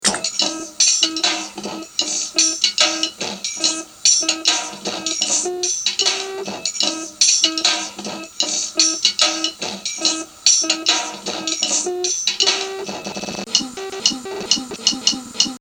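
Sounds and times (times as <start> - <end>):
drum kit playing: 0.0 - 15.6.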